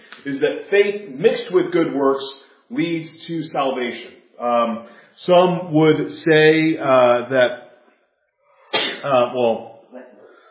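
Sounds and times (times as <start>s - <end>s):
speech: 0.2s - 7.6s, 9.0s - 9.7s
person sneezing: 8.7s - 9.2s.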